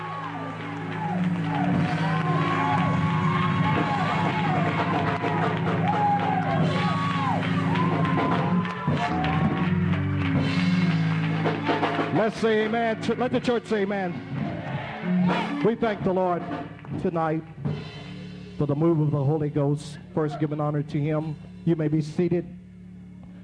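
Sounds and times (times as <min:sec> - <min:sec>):
audience hand clapping: 0:00.0 - 0:13.9, 0:15.6 - 0:17.4
speech: 0:12.4 - 0:14.3, 0:15.3 - 0:17.6, 0:18.6 - 0:22.6.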